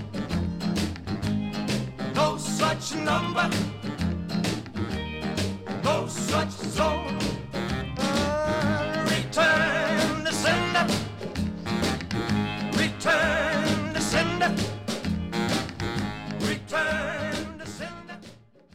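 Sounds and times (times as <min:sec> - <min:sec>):
recorded rock and roll song: 0:00.0 - 0:18.7
speech: 0:02.7 - 0:03.8, 0:06.1 - 0:07.4.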